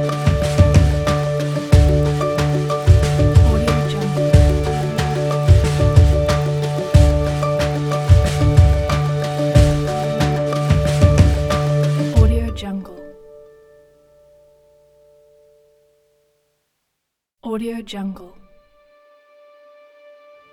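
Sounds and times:
inspiring indie folk music: 0.0s - 13.6s.

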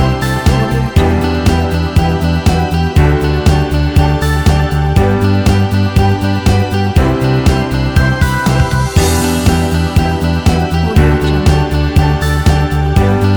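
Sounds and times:
energetic corporate pop music: 0.0s - 13.3s.

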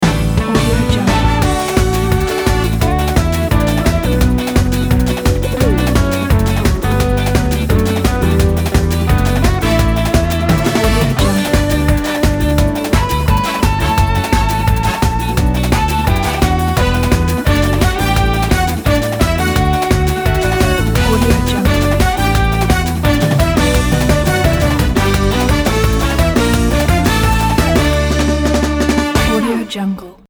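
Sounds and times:
carnival land ident music: 0.0s - 29.7s.

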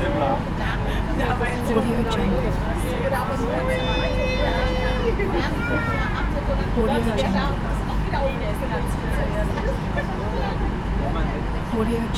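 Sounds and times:
ferry ambience: 0.0s - 12.1s.

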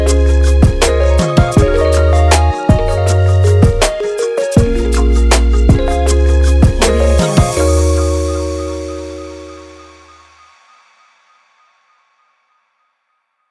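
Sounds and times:
lofi beat: 0.0s - 10.2s.

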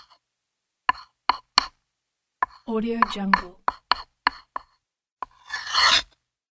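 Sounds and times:
chalk writing: 0.9s - 1.6s, 3.7s - 6.0s.

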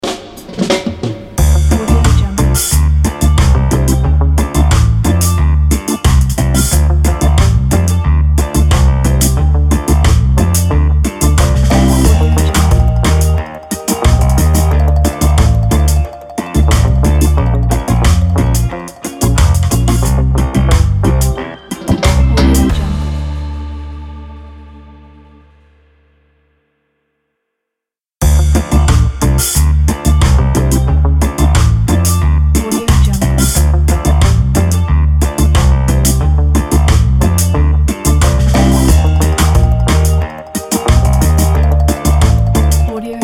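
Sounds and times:
reggae loop: 1.4s - 23.4s, 28.2s - 43.2s.

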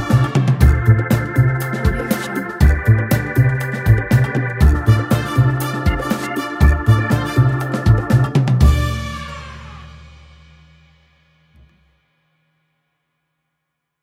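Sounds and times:
upbeat jazz: 0.0s - 10.0s.

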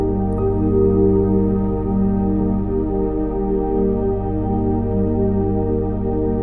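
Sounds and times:
soulful meditation soundscape: 0.0s - 6.3s.

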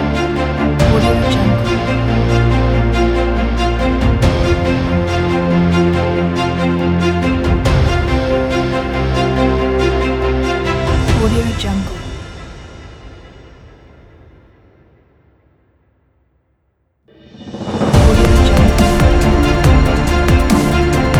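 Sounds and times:
inspirational cinematic dubstep music: 0.0s - 12.2s, 17.2s - 21.1s.

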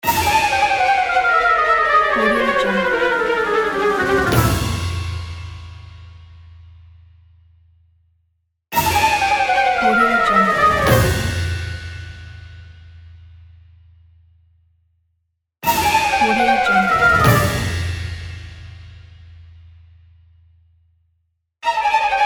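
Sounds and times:
cartoon orchestral falling: 0.3s - 5.0s, 8.9s - 11.5s, 15.7s - 17.8s.

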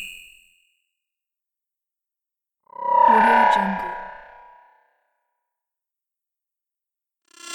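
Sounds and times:
scanning ambience: 2.8s - 4.6s.

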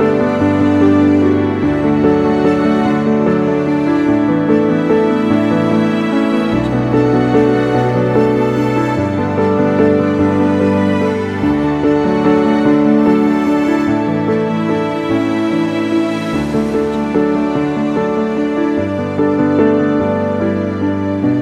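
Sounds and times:
beautiful strings: 0.0s - 21.4s
emotional piano: 0.0s - 21.4s.

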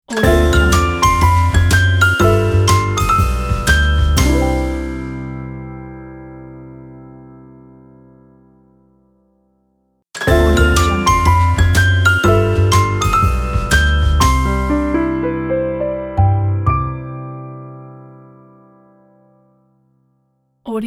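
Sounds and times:
jazz logo intro: 0.2s - 6.1s, 10.3s - 16.8s.

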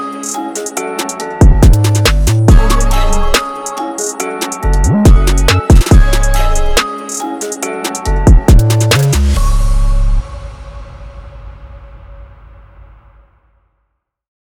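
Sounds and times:
drill trap beat: 1.0s - 9.4s.

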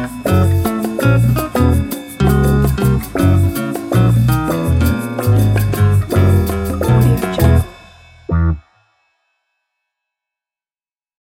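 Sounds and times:
whimsical retro music: 0.0s - 8.6s.

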